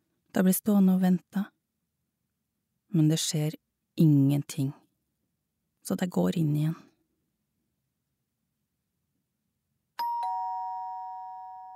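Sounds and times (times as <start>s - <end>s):
speech: 0.4s - 1.6s, 2.9s - 4.8s, 5.9s - 6.9s
doorbell chiming ding-dong: 10.0s - 11.7s.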